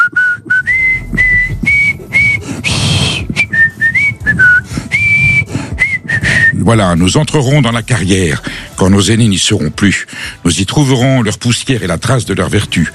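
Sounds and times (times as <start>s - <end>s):
person whistling a national anthem: 0.0s - 6.7s
speech: 6.7s - 12.9s.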